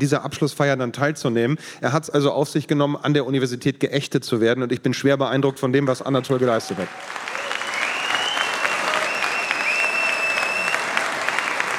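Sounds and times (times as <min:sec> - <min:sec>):
speech: 0:00.0 - 0:07.2
audience applause: 0:06.0 - 0:11.7
faint whistle-like tones: 0:07.6 - 0:10.8.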